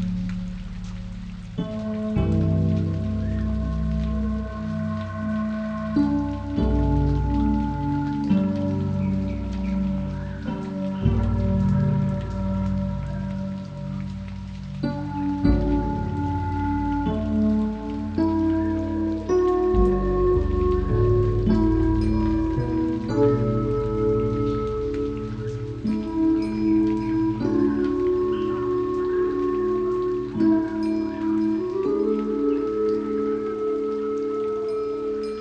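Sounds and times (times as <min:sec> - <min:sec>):
tropical rainforest zen spa music: 0:00.0 - 0:35.4.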